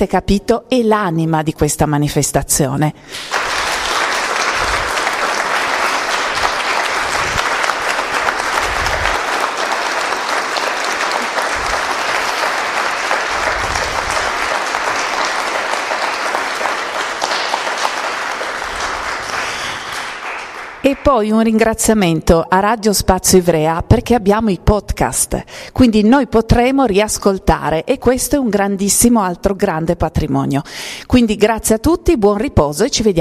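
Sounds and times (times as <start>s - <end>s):
speech: 0.0s - 3.5s, 21.1s - 33.1s
audience applause: 3.1s - 21.2s.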